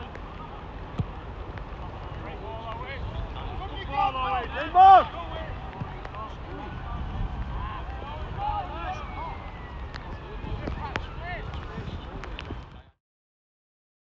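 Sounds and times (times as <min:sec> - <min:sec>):
rain: 0:00.0 - 0:12.7
Sunday afternoon football game: 0:00.0 - 0:13.0.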